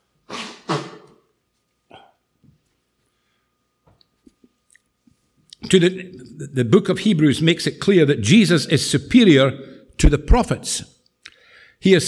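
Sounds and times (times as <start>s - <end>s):
nose blowing: 0.2s - 1.2s
speech: 5.7s - 11.0s, 11.8s - 12.0s.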